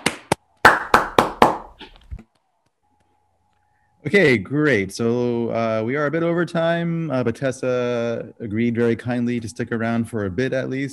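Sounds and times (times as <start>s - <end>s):
round of applause: 0.6s - 1.8s
speech: 4.0s - 10.9s.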